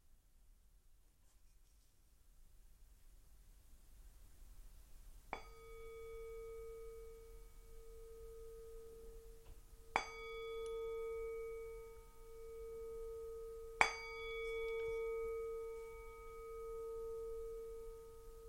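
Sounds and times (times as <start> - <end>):
singing bowl struck and ringing: 5.4 - 18.4.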